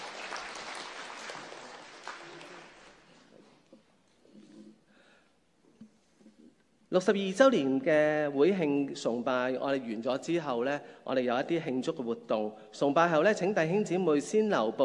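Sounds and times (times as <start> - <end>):
congregation applauding during a church's 62nd anniversary worship service: 0.0 - 3.3
speech: 6.9 - 14.8.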